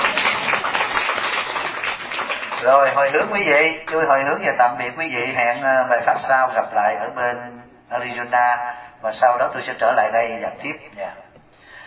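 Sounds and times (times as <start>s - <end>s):
audience applause at a Buddhist dharma talk: 0.0s - 4.2s
speech: 2.6s - 11.2s.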